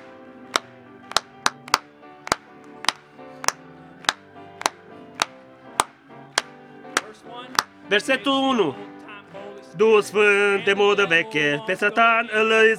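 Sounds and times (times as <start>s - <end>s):
audience clapping: 0.6s - 7.8s
speech: 7.9s - 8.9s, 9.8s - 12.7s.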